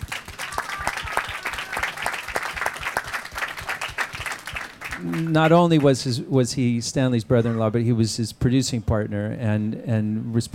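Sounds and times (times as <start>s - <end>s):
audience applause: 0.0s - 6.0s
speech: 5.0s - 10.5s.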